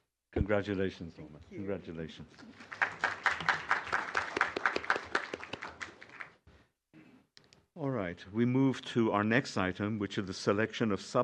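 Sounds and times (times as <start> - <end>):
speech: 0.4 - 3.6, 7.8 - 11.2
applause at a committee meeting: 2.5 - 6.4.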